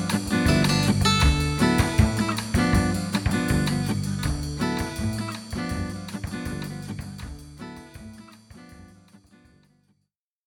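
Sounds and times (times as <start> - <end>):
bossa nova music in D: 0.0 - 7.3.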